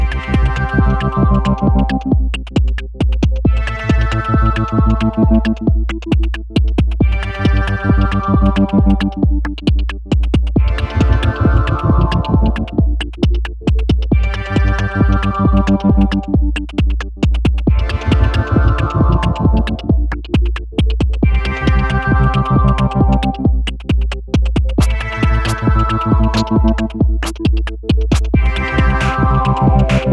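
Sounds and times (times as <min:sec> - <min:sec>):
synth drum: 0:00.0 - 0:30.1.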